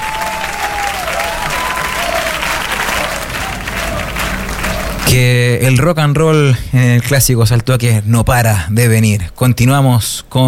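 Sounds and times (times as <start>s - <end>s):
audience applause: 0.0s - 5.4s
speech: 5.1s - 10.4s.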